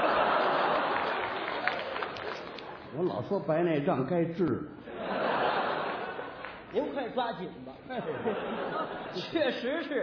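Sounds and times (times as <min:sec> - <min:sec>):
laughter: 0:00.0 - 0:01.9, 0:04.9 - 0:06.8, 0:07.9 - 0:10.0
audience applause in a crosstalk comedy theatre: 0:00.0 - 0:02.8
speech: 0:03.0 - 0:04.8, 0:06.7 - 0:10.0.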